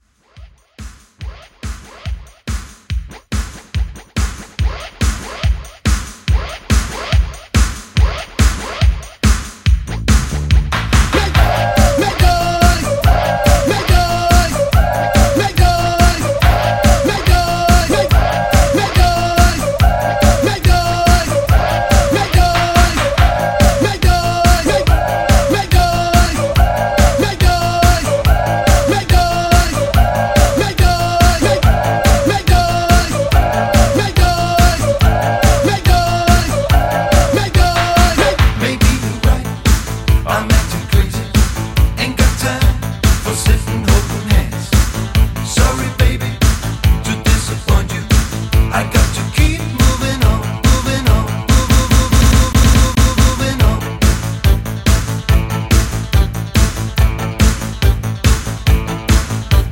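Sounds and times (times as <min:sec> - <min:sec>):
pop music: 0:04.2 - 0:59.7.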